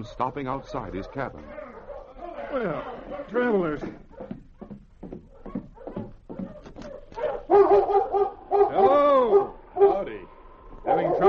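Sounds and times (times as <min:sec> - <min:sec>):
speech: 0:00.0 - 0:01.6, 0:02.5 - 0:04.1
collie barking and whimpering: 0:00.8 - 0:03.5, 0:05.3 - 0:10.1, 0:10.8 - 0:11.2.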